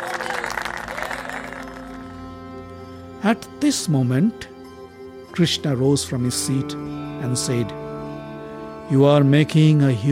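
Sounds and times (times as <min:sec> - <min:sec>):
large crowd applauding: 0:00.0 - 0:02.4
speech: 0:03.2 - 0:04.5, 0:05.4 - 0:07.8, 0:08.9 - 0:10.0.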